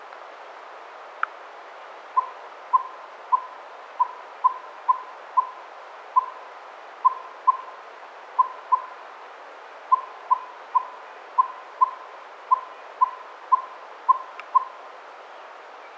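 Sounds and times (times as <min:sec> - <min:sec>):
Northern Saw-whet Owl Aegolius acadicus acadicus calling: 0:02.2 - 0:05.6, 0:06.2 - 0:06.4, 0:07.0 - 0:07.7, 0:08.4 - 0:09.0, 0:09.9 - 0:14.8.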